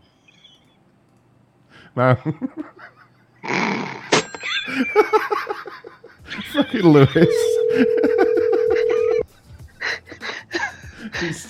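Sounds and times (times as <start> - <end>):
speech: 2.0 - 3.0, 4.7 - 8.2, 11.2 - 11.4
laughter: 4.4 - 9.2
telephone tone after a disconnected call: 7.1 - 9.2.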